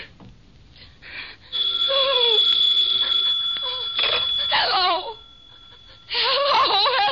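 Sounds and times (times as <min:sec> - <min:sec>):
telephone ringing: 0:01.5 - 0:07.0.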